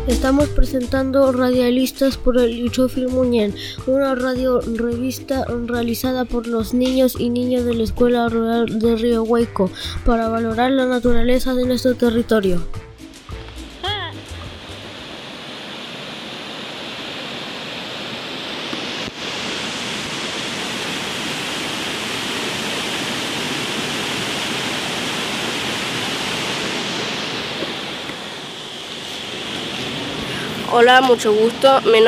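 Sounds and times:
speech: 0.0 - 12.8, 30.8 - 32.0
rushing waterfall: 13.1 - 32.0.

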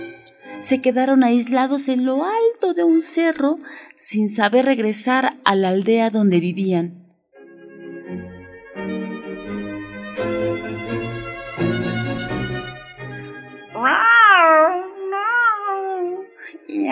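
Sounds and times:
sustained tonal music: 0.0 - 3.3, 7.4 - 16.8
speech: 0.6 - 7.0.

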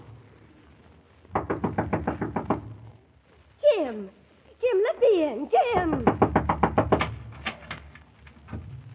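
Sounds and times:
knocking on a door: 1.3 - 2.7, 5.8 - 7.3
speech: 5.2 - 6.1.

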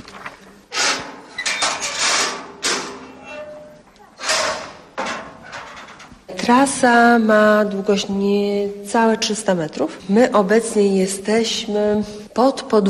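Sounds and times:
metal grate door unlocked and opened at an underground tourist route in Lublin: 0.7 - 6.3
speech: 6.4 - 12.8.

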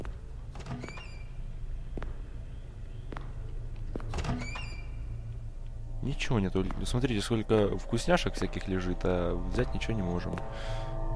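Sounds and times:
steady low hum: 0.0 - 11.1
door opening in the horror video game Curse of Blackwater: 0.5 - 1.4, 4.1 - 5.2
squeaky tonal streaks: 0.6 - 1.4, 4.2 - 5.3
speech: 6.0 - 11.1.

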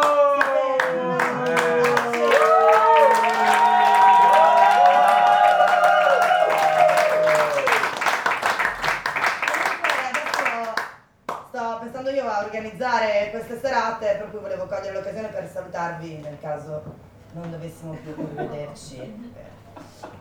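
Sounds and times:
lazy, sparse applause from a comedy-night audience: 0.0 - 10.8
speech: 12.8 - 19.6.

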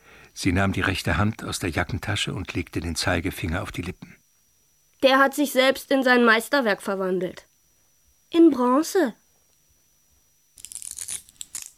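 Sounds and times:
speech: 0.4 - 4.2, 5.0 - 7.5, 8.3 - 9.2
glass being bitten and crunched: 10.6 - 11.7.

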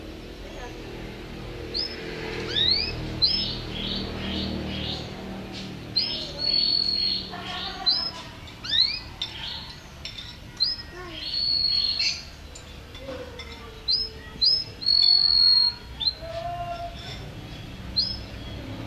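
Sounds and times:
champion canary in strong full song: 0.0 - 18.8.

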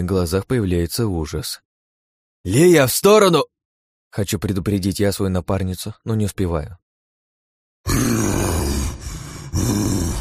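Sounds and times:
speech: 0.0 - 1.6, 2.4 - 6.8, 7.8 - 8.6, 9.6 - 10.2
enraged monster troll growl: 7.9 - 10.2.

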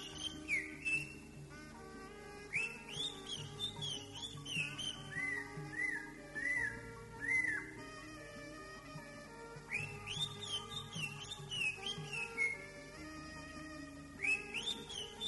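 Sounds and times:
greater green leafbird song: 0.0 - 1.4, 2.4 - 7.8, 9.6 - 13.0, 14.1 - 15.2.

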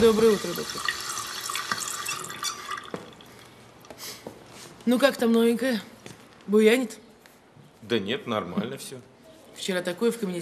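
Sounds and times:
speech: 0.0 - 1.0, 4.8 - 5.9, 6.5 - 7.0, 7.8 - 10.4
water running into a sink as a woman fills it: 0.0 - 3.3.

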